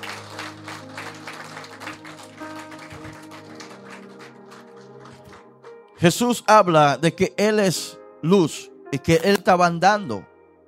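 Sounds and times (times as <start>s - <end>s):
crowd applauding: 0.0s - 5.8s
speech: 6.0s - 10.3s.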